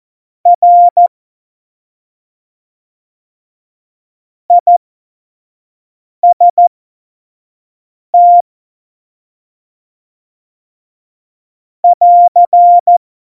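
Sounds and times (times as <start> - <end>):
Morse code course beeps: 0.5 - 1.1, 4.5 - 4.8, 6.2 - 6.6, 8.2 - 8.4, 11.8 - 13.0.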